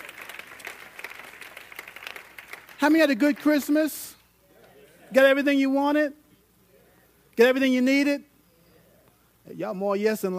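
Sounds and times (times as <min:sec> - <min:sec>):
audience applauding and clapping hands: 0:00.0 - 0:03.8
speech: 0:02.8 - 0:04.2, 0:05.1 - 0:06.2, 0:07.4 - 0:08.3, 0:09.5 - 0:10.3.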